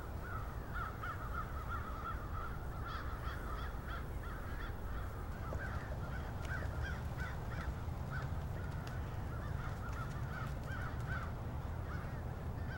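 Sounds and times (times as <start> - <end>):
crow flock cawing in Cincinnati: 0.2 - 12.7.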